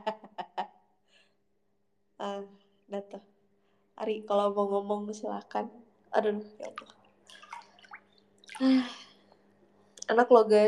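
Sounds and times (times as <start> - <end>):
speech: 2.2 - 3.3, 4.0 - 7.0, 8.6 - 9.0, 10.1 - 10.6
hot water dripping and trickling: 6.6 - 9.2.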